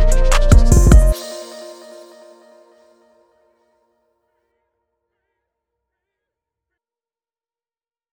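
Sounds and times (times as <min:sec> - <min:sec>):
rap trap instrumental: 0:00.0 - 0:02.8.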